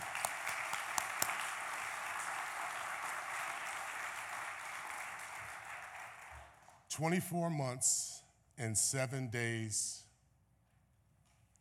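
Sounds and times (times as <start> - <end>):
audience applause: 0.0 - 6.7
speech: 7.0 - 10.0.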